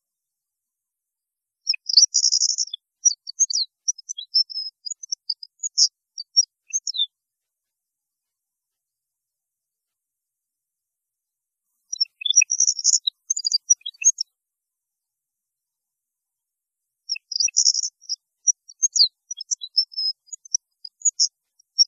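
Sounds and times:
European goldfinch twittering song: 1.6 - 7.1, 11.9 - 14.3, 17.1 - 21.8.

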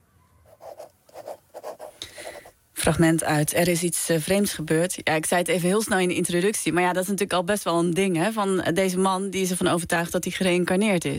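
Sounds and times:
pen scratching on paper writing a letter: 0.5 - 2.5
speech: 2.8 - 11.1.

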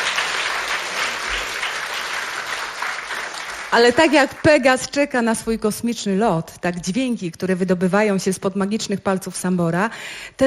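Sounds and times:
audience applause: 0.0 - 4.4
speech: 3.7 - 10.4.

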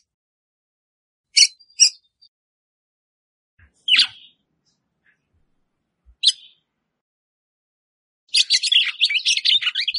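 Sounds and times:
Red-cowled Cardinal song: 1.3 - 2.3, 3.6 - 4.4, 6.2 - 6.6, 8.3 - 9.9.

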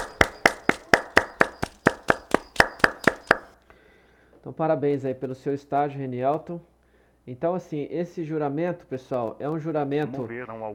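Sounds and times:
applause: 0.0 - 3.5
speech: 4.4 - 10.7.

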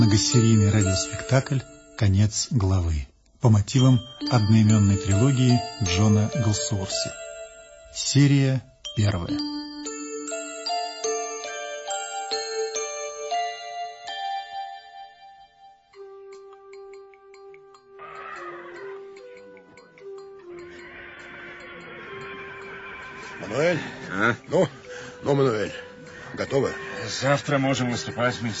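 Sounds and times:
chiming musical phrase with sustained tones: 0.0 - 2.9, 3.5 - 28.5
speech: 0.1 - 7.2, 7.9 - 9.5, 23.6 - 28.5
horses whinnying: 18.0 - 19.1, 20.5 - 24.5.

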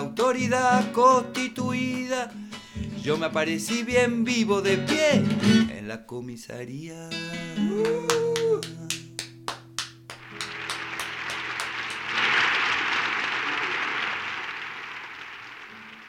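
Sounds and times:
speech: 0.2 - 8.7
audience applause after a live performance: 10.1 - 16.0.

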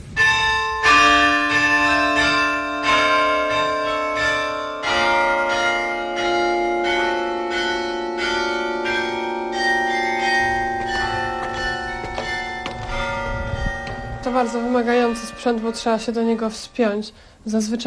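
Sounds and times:
carillon in the Gdańsk town hall tower playing a slow melody: 0.0 - 17.0
speech: 14.4 - 17.8.

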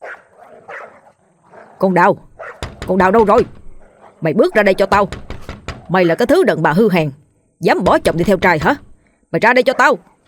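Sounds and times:
dog outside barking: 0.0 - 2.8, 3.8 - 4.6, 5.8 - 6.5, 9.7 - 10.2
speech: 1.8 - 2.3, 2.9 - 3.6, 4.2 - 5.2, 5.9 - 10.1.

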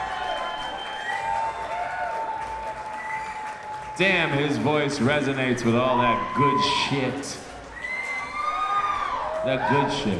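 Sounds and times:
audience applause: 0.0 - 10.1
speech: 4.0 - 7.4, 9.4 - 10.1.

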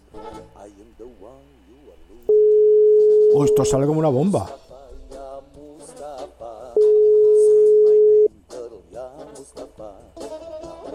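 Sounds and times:
telephone line tone while placing a call: 2.3 - 3.9, 6.8 - 8.3
speech: 3.3 - 4.6.

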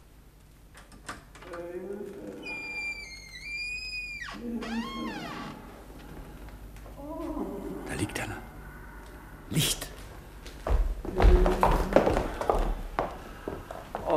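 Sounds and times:
low steady hum: 0.0 - 14.1
door swinging open with high-pitched hinge squeal: 2.4 - 5.6
speech: 9.5 - 9.8.

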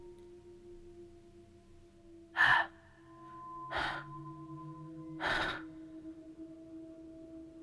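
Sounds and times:
heavy panting breath of hungry beast: 3.7 - 4.1, 5.2 - 5.7.

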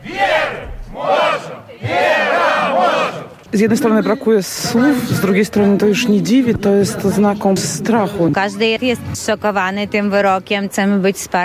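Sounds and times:
protesters chanting at a picket: 0.0 - 3.4
speech: 3.5 - 11.4.

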